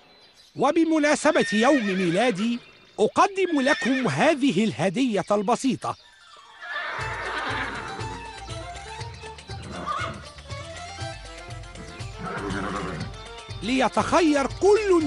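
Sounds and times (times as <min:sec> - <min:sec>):
speech: 0:00.5 - 0:06.0, 0:13.6 - 0:15.0
horses neighing: 0:00.9 - 0:04.9, 0:06.1 - 0:13.5.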